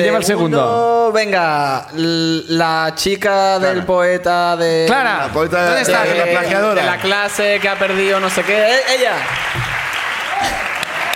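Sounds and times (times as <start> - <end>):
speech: 0.0 - 9.8
crowd applauding: 5.9 - 11.1.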